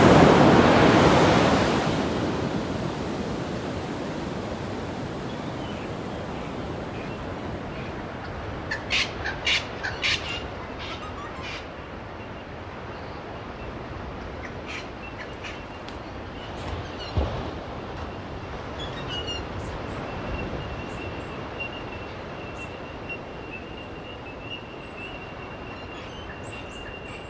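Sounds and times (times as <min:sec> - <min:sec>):
ocean sound: 0:00.0 - 0:27.2.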